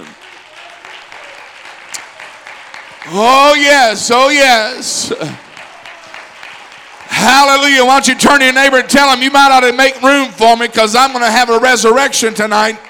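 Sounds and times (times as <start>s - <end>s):
audience hand clapping: 0.0s - 9.1s, 12.5s - 12.8s
speech: 3.1s - 5.4s, 7.2s - 12.8s.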